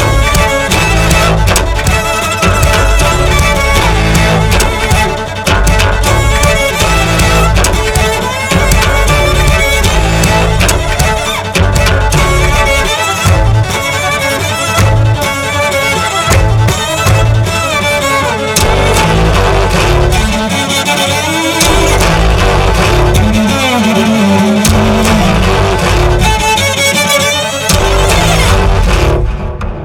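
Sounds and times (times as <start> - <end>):
cellos playing: 0.0 - 29.7.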